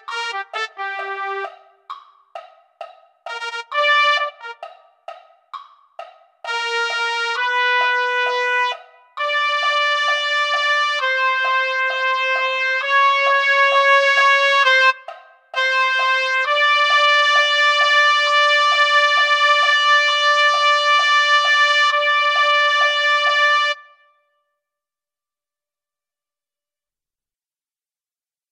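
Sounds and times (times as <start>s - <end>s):
trumpet: 0.0s - 1.9s, 3.3s - 4.9s, 6.4s - 24.4s.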